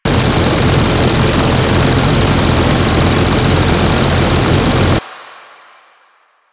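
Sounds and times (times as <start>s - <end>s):
Gatling turret firing: 0.0s - 5.0s.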